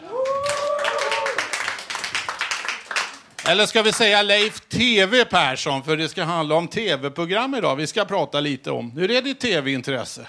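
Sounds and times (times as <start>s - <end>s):
high whoop: 0.0s - 1.7s
audience applause: 0.0s - 4.1s
speech: 3.4s - 10.2s.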